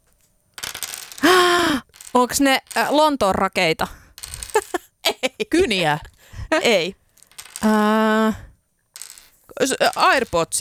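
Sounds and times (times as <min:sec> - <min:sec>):
shaped dice rattling: 0:00.6 - 0:04.8, 0:06.6 - 0:08.4, 0:09.0 - 0:10.5
speech: 0:02.1 - 0:04.0, 0:05.6 - 0:07.0, 0:07.6 - 0:08.4, 0:09.6 - 0:10.5.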